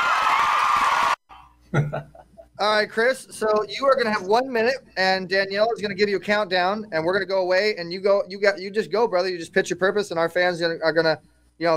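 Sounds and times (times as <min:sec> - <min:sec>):
audience applause: 0:00.0 - 0:01.2
speech: 0:01.7 - 0:11.7.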